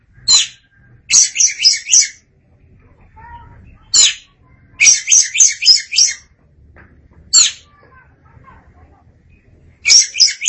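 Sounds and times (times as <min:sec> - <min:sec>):
Oriental magpie-robin calls: 0:00.2 - 0:02.2, 0:03.8 - 0:06.3, 0:07.3 - 0:07.7, 0:09.8 - 0:10.4.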